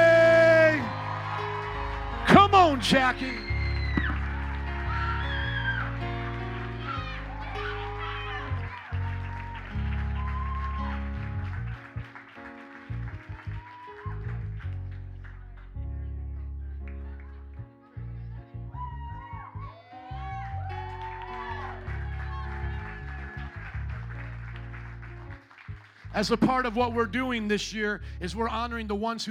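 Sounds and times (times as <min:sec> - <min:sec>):
high whoops and shrill shouts: 0:00.0 - 0:06.0, 0:06.8 - 0:11.1, 0:18.8 - 0:23.1
audience clapping: 0:00.0 - 0:15.9, 0:16.8 - 0:17.9, 0:20.2 - 0:27.3
speech: 0:02.8 - 0:03.5, 0:26.2 - 0:29.2.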